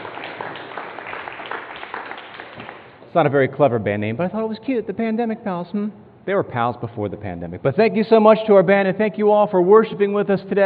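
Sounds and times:
audience applause: 0.0 - 3.0
speech: 3.1 - 10.6.

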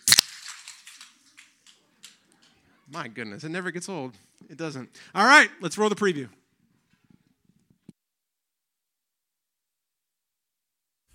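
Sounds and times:
soda cans popping open: 0.0 - 2.4
speech: 2.9 - 6.4.

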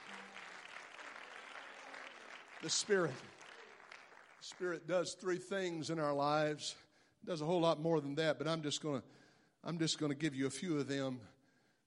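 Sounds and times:
audience clapping hands: 0.0 - 5.4
speech: 2.6 - 3.4, 4.4 - 11.4.

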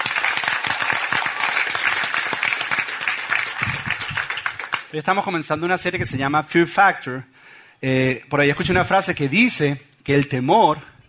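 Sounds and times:
audience applause: 0.0 - 4.9
speech: 4.9 - 10.9.

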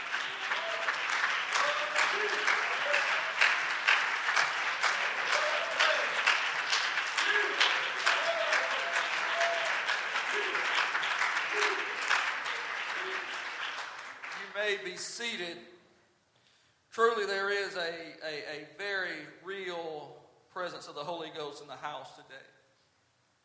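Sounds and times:
audience clapping hands in praise: 0.0 - 15.4
speech: 14.8 - 15.7, 17.0 - 20.0, 20.6 - 22.6.

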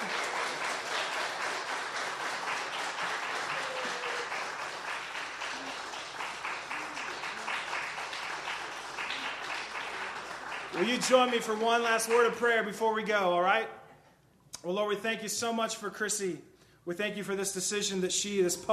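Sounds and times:
crowd applauding: 0.0 - 12.5
speech: 10.8 - 13.8, 14.6 - 18.7.

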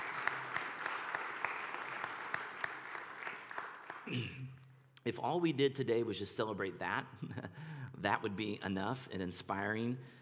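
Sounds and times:
audience applause: 0.0 - 4.4
speech: 4.1 - 10.2.

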